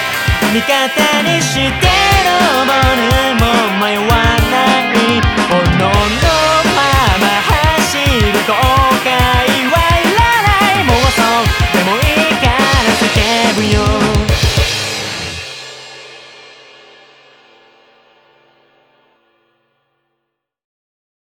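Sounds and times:
backing track without bass: 0.0 - 15.7.

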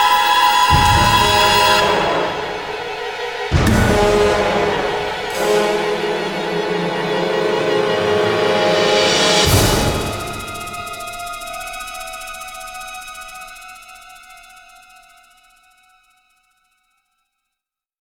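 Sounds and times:
scary sound: 0.0 - 12.1.

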